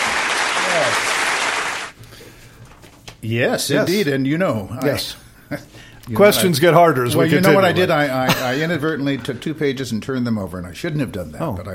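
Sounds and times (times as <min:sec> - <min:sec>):
audience applause: 0:00.0 - 0:02.0
speech: 0:00.8 - 0:01.1, 0:03.2 - 0:11.7.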